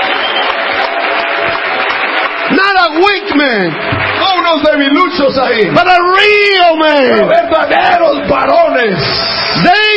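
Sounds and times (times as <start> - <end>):
church congregation clapping in praise during a bilingual worship service: 0.0 - 7.0
speech: 3.0 - 9.9.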